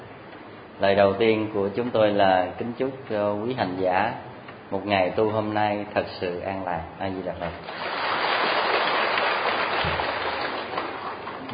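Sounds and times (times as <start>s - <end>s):
speech: 0.8s - 8.2s
heavy pouring rain: 7.8s - 11.1s.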